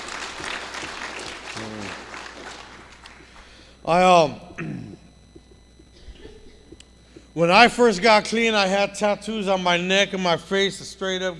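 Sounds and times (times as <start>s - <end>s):
audience applause: 0.0s - 3.2s
speech: 3.9s - 4.9s, 7.4s - 11.3s.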